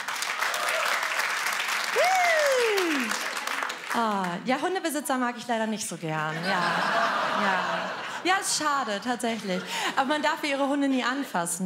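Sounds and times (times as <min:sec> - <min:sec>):
crowd clapping: 0:00.0 - 0:04.5
speech: 0:04.0 - 0:11.6
laughter: 0:06.3 - 0:11.4.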